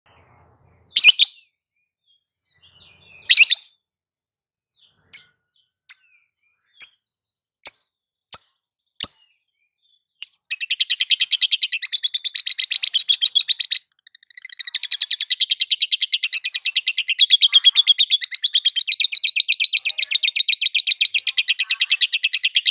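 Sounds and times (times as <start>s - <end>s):
lovebird chattering in konslet style: 10.3s - 22.6s.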